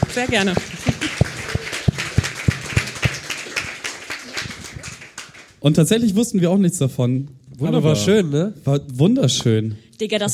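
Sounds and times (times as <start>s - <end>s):
rhythmic clapping: 0.0s - 5.6s
speech: 0.2s - 1.3s, 5.6s - 10.3s.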